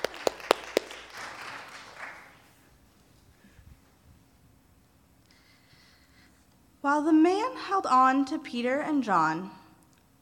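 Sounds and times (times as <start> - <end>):
sharp hand claps: 0.0 - 2.4
audience applause: 0.0 - 2.5
speech: 6.8 - 9.6.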